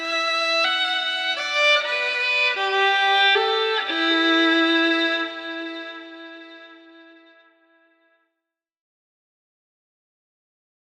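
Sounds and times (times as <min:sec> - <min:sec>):
somber violin: 0:00.0 - 0:07.7.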